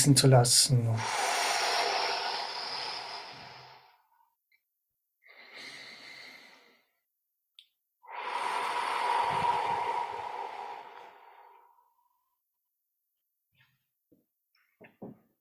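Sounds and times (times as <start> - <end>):
speech: 0.0 - 1.4
deep slow breathing during a relaxation exercise: 1.0 - 4.2, 5.2 - 7.0, 8.0 - 12.4.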